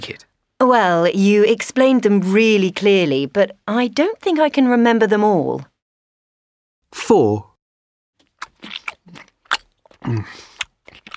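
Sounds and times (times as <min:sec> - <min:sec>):
speech: 0:00.0 - 0:05.7, 0:06.9 - 0:07.5, 0:10.0 - 0:10.5
noisy messy chewing while eating: 0:08.2 - 0:11.1.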